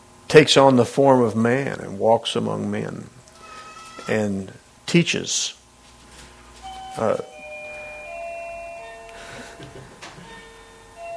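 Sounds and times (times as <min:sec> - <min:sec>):
speech: 0:00.3 - 0:03.2, 0:04.0 - 0:05.6, 0:07.0 - 0:07.3
bell ringing: 0:06.6 - 0:11.1.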